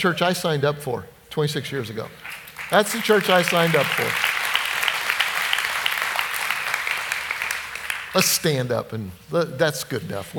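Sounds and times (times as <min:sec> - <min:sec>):
speech: 0:00.0 - 0:04.3, 0:08.2 - 0:10.3
audience clapping: 0:02.2 - 0:08.4.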